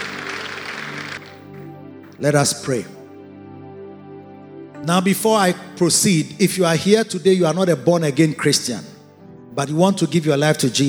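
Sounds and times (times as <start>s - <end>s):
crowd clapping: 0.0s - 1.7s
speech: 2.2s - 3.0s, 4.9s - 8.9s, 9.6s - 10.8s.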